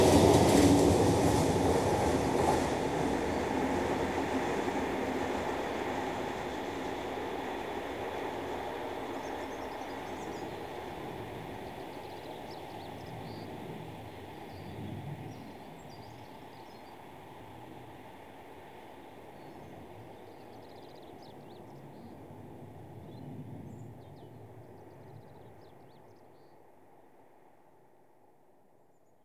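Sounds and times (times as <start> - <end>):
heavy goods diesel trains passing: 0.0 - 14.3.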